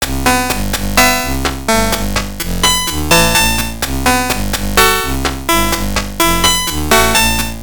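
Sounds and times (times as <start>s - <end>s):
chiptune music: 0.0s - 7.6s.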